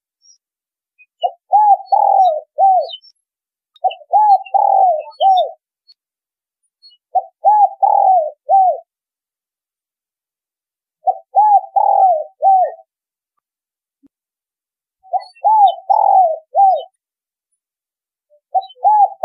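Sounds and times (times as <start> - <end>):
spotted dove cooing: 1.2 - 3.0, 3.8 - 5.6, 7.1 - 8.9, 11.0 - 12.9, 15.1 - 16.9, 18.4 - 19.2.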